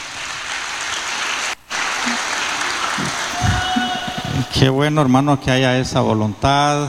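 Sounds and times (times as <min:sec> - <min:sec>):
audience clapping hands: 0:00.0 - 0:04.6
speech: 0:04.6 - 0:06.8.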